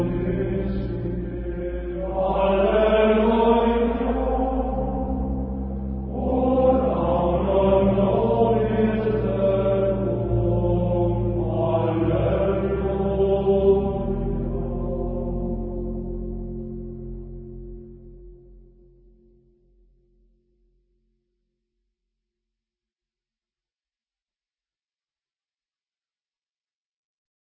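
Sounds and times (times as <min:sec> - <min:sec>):
Gregorian chant: 0:00.0 - 0:16.4.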